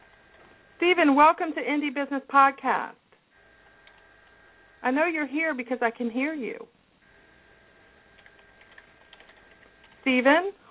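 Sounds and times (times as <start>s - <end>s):
speech: 0.8s - 3.0s, 4.8s - 6.8s, 10.1s - 10.6s
typing on a computer keyboard: 8.2s - 10.0s.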